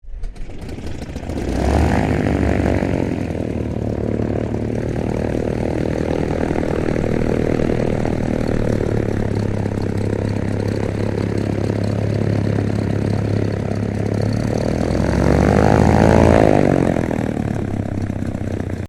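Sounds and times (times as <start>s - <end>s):
PL-12 Airtruck aircraft engine starting up and idling: 0.0s - 18.8s.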